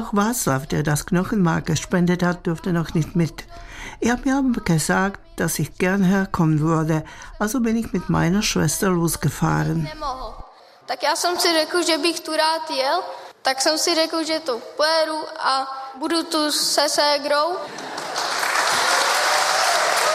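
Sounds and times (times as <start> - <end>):
speech: 0.0 - 18.3
audience applause: 17.7 - 20.1.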